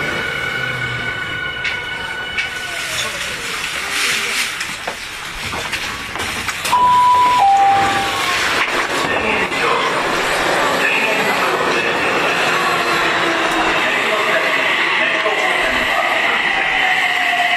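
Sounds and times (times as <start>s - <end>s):
Tokyu 5050 series train running between Jiyugaoka and Den-en-chofu: 0.0s - 17.5s.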